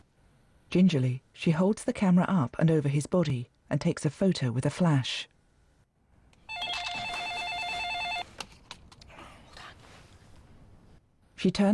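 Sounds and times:
speech: 0:00.7 - 0:05.3, 0:11.4 - 0:11.7
electronic telephone ring: 0:06.5 - 0:08.3.

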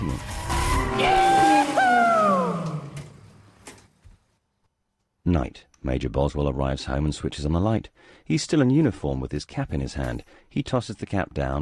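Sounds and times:
car engine: 0:00.0 - 0:03.7
tires squealing as a car drifts with the handbrake on a mountain road: 0:00.1 - 0:03.2
speech: 0:05.3 - 0:11.6.

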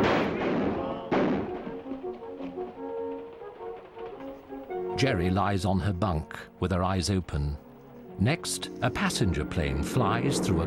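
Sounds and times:
gunshots: 0:00.0 - 0:02.8
speech: 0:05.0 - 0:07.6, 0:08.2 - 0:10.6.

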